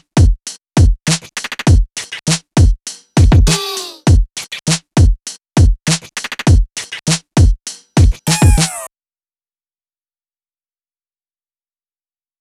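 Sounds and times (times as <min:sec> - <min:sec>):
drums at 100 bpm: 0:00.0 - 0:08.9.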